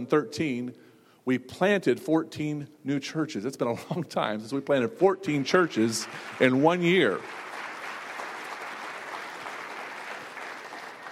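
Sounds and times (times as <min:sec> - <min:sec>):
speech: 0:00.0 - 0:07.5
audience applause: 0:05.8 - 0:11.1.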